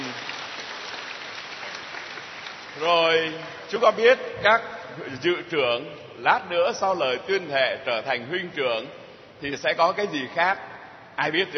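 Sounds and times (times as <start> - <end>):
applause thanking parents at a Catholic Eucharistic youth ceremony: 0.0 - 3.7
speech: 2.8 - 11.5.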